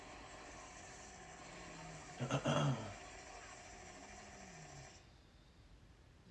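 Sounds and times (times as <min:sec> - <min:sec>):
person snoring: 0:00.1 - 0:05.0.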